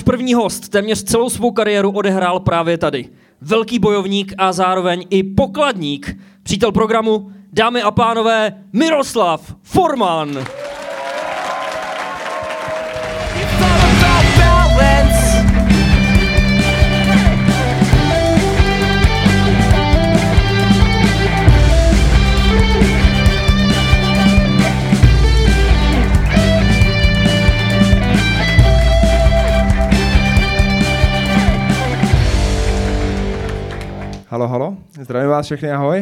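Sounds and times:
speech: 0:00.1 - 0:10.6, 0:34.3 - 0:36.0
podcast theme jingle: 0:12.9 - 0:34.2.

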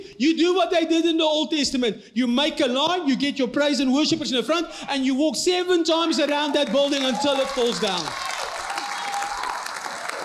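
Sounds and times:
speech: 0:00.1 - 0:08.4
audience clapping: 0:06.2 - 0:10.2.

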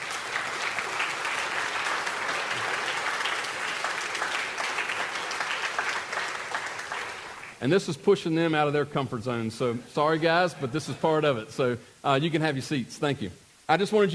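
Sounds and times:
audience applause: 0:00.0 - 0:07.6
speech: 0:07.6 - 0:14.1.

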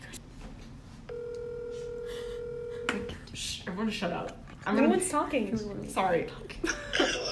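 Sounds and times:
phone call tone on speakerphone: 0:01.1 - 0:03.1
speech: 0:03.8 - 0:07.2.

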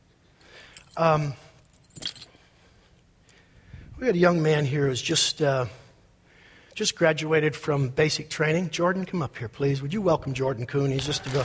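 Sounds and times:
dog identity tags jangling: 0:00.4 - 0:02.4
speech: 0:01.0 - 0:01.4, 0:04.0 - 0:05.8, 0:06.8 - 0:11.4.

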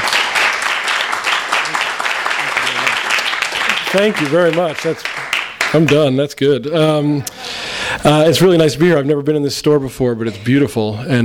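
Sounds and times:
audience applause: 0:00.0 - 0:06.1
speech: 0:03.9 - 0:07.4, 0:08.0 - 0:11.2.

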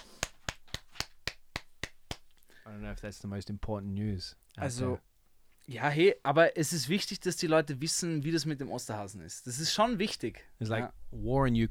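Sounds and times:
sharp hand claps: 0:00.0 - 0:02.4
speech: 0:02.7 - 0:05.1, 0:05.7 - 0:11.6.

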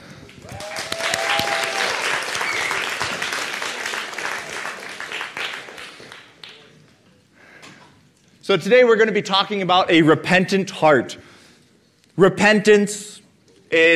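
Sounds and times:
audience applause: 0:00.2 - 0:06.7
speech: 0:08.5 - 0:11.2, 0:12.2 - 0:13.1, 0:13.7 - 0:13.9.

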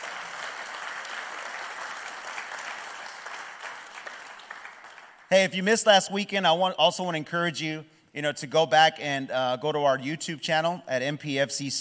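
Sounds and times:
congregation clapping for its pastor: 0:00.0 - 0:05.7
speech: 0:05.3 - 0:11.7.

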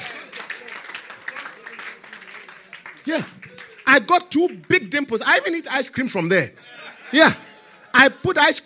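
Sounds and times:
congregation clapping for the Lord Jesus during a church sermon: 0:00.0 - 0:05.6
speech: 0:03.1 - 0:03.3, 0:03.9 - 0:08.6
laughter: 0:06.5 - 0:08.4.

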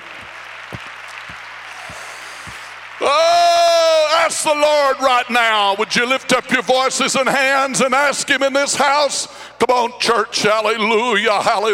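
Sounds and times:
audience clapping hands: 0:00.0 - 0:06.7
speech: 0:04.4 - 0:11.7.

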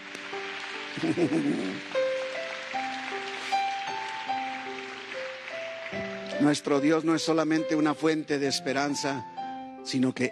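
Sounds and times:
audience applause: 0:00.0 - 0:06.7
laughter: 0:01.0 - 0:01.8
speech: 0:01.0 - 0:02.0, 0:06.4 - 0:09.3, 0:09.9 - 0:10.2.

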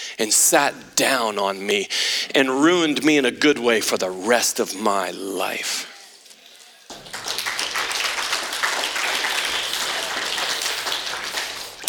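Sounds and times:
speech: 0:00.2 - 0:05.9
hand clapping: 0:06.9 - 0:11.8.

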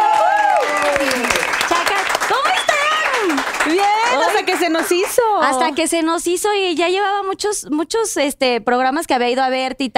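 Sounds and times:
high whoops and cheering voices: 0:00.0 - 0:01.4, 0:02.3 - 0:04.3
studio audience applause: 0:00.0 - 0:05.9
speech: 0:04.8 - 0:09.9.

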